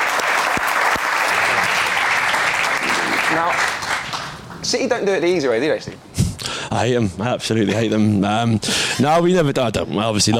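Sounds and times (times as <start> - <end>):
audience round of applause: 0.0 - 4.7
speech: 3.3 - 3.8, 4.6 - 6.1, 6.7 - 10.3.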